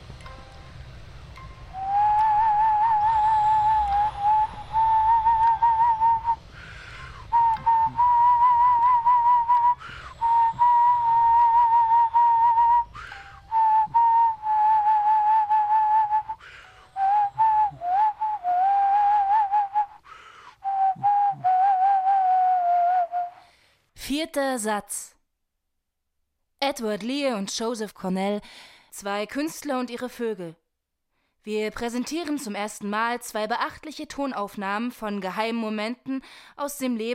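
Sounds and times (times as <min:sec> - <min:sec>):
person whistling a melody: 0:01.7 - 0:06.6, 0:07.2 - 0:23.5
speech: 0:24.2 - 0:25.1, 0:26.8 - 0:30.6, 0:31.4 - 0:37.1.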